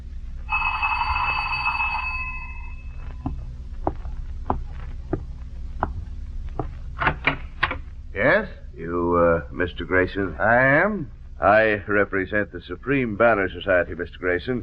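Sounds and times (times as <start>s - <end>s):
low steady rumble: 0.0s - 14.6s
doorbell ringing with bright sustained chime: 0.5s - 3.0s
evenly spaced soft thumps: 3.0s - 7.9s
speech: 9.8s - 14.6s.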